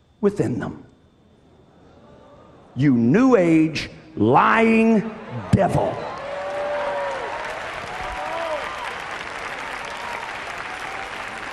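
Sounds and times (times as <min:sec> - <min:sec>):
speech: 0:00.2 - 0:00.9, 0:02.8 - 0:06.1
audience clapping weakly: 0:06.1 - 0:11.5.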